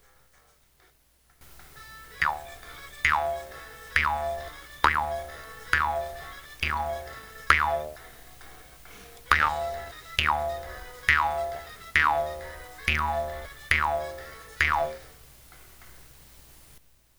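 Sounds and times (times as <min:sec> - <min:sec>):
jaw harp twanging: 0:01.6 - 0:15.2.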